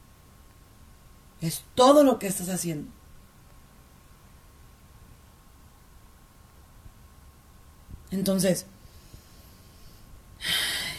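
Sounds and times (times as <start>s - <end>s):
speech: 1.4s - 3.0s, 8.2s - 8.8s
deep breath during a Spanish-language faith talk: 8.8s - 10.9s.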